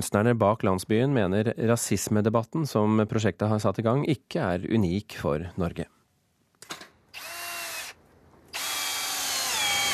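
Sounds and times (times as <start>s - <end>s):
speech: 0.0s - 6.0s
power drill driving screws while building a replica Congo village in Frognerparken, Oslo: 7.1s - 9.9s.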